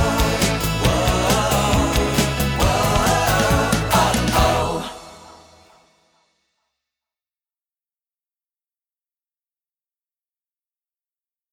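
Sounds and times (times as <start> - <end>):
hello song: 0.0 - 5.9.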